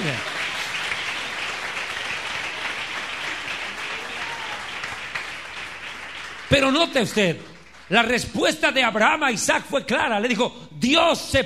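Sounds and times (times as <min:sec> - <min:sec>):
audience applauding: 0:00.0 - 0:08.2
speech: 0:06.5 - 0:11.4.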